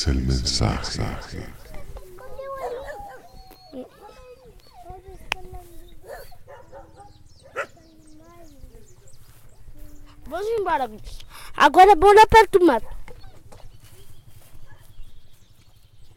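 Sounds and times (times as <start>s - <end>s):
speech: 0.0s - 1.6s, 10.3s - 13.0s
dogs barking outdoors: 1.7s - 5.3s, 5.9s - 8.2s, 12.6s - 13.6s.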